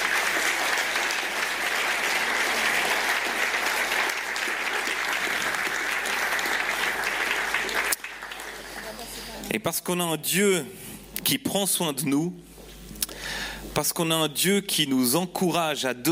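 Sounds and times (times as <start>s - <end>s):
audience applauding: 0.0s - 9.4s
speech: 9.6s - 12.5s, 13.7s - 16.1s.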